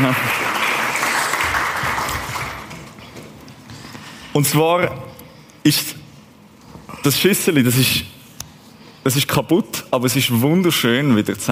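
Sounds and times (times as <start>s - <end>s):
audience applause: 0.0s - 3.0s
speech: 0.1s - 0.3s, 4.4s - 6.0s, 7.0s - 8.2s, 9.0s - 11.5s.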